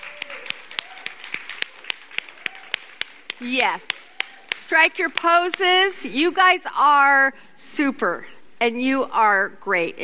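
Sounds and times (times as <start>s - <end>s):
audience applause: 0.0s - 4.6s
speech: 3.4s - 4.0s, 4.6s - 10.0s.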